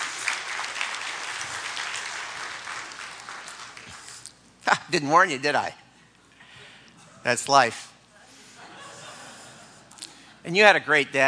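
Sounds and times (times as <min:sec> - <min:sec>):
audience applause: 0:00.0 - 0:04.2
speech: 0:04.7 - 0:05.8, 0:07.2 - 0:07.9, 0:10.4 - 0:11.2
laughter: 0:08.3 - 0:10.0.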